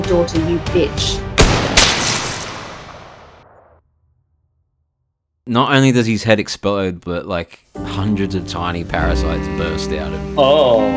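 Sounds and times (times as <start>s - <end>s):
speech: 0.1s - 1.2s, 5.5s - 10.9s
single loud gunshot: 1.4s - 3.8s.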